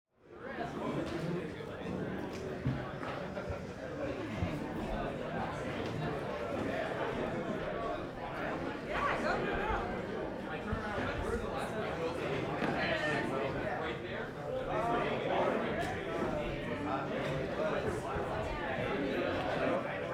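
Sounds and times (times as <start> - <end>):
crowd noise: 0.2 - 20.1.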